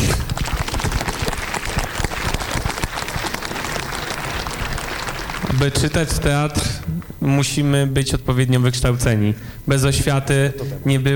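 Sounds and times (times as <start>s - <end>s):
audience applause: 0.0s - 7.1s
speech: 5.6s - 11.1s.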